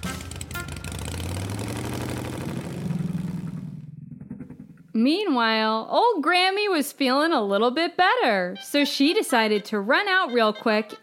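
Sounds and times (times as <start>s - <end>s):
small scooter engine revving and pulling away: 0.0s - 4.8s
speech: 5.0s - 11.0s.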